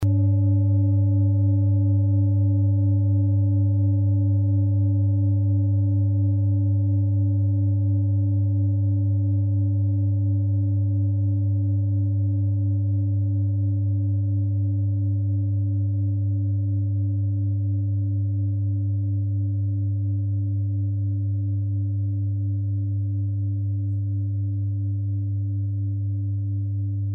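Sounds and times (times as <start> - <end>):
singing bowl from Ladakh: 0.0 - 27.1.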